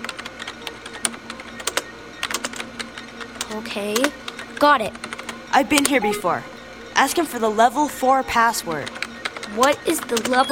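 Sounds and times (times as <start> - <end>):
typing on a computer keyboard: 0.0 - 6.0, 8.8 - 10.4
speech: 3.6 - 10.4.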